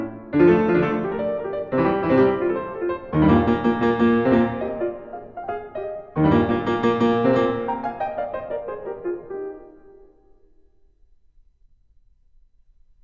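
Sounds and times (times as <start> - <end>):
fast classical piece in C major: 0.0 - 10.3.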